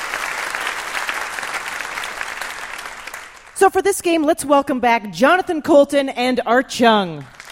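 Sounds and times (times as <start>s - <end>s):
crowd applause: 0.0s - 3.6s, 7.3s - 7.5s
speech: 3.6s - 7.4s.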